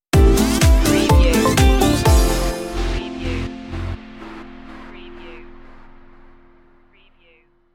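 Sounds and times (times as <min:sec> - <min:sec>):
beat stinger: 0:01.0 - 0:07.4.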